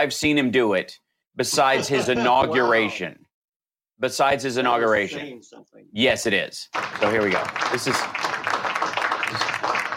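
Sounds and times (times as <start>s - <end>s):
speech: 0.0s - 3.2s, 4.0s - 8.3s, 9.3s - 9.5s
audience clapping: 6.7s - 9.9s.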